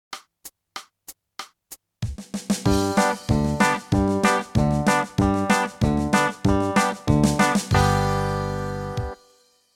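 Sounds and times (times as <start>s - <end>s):
country music: 2.7s - 9.2s.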